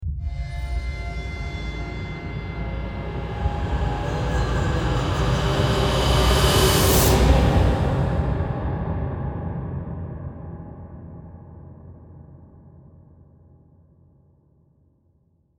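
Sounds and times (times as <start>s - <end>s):
background music: 0.2s - 8.9s.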